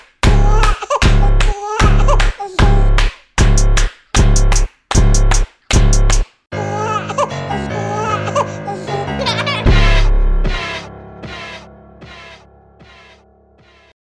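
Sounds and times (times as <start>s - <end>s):
raw instrumental music in A flat minor: 0.2s - 13.8s.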